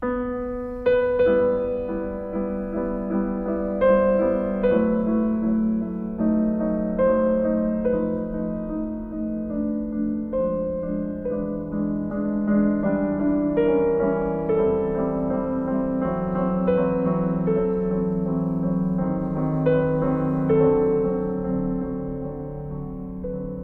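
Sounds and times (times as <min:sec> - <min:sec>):
piano prelude: 0:00.0 - 0:23.6.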